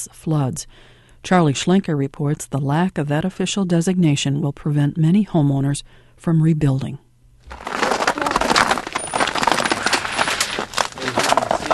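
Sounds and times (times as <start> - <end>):
speech: 0.0 - 7.7
ice crunching underfoot outside: 7.4 - 11.7.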